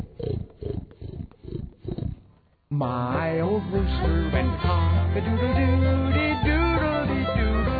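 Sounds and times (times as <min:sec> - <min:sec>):
person imitating pig oinks in a song: 0:00.0 - 0:02.3
speech: 0:02.8 - 0:07.6.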